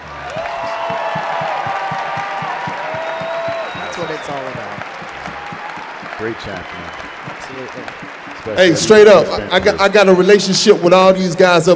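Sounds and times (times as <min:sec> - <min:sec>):
crowd cheering and whooping: 0:00.0 - 0:09.3
audience applause: 0:00.0 - 0:09.9
speech: 0:04.0 - 0:05.0, 0:06.2 - 0:11.7.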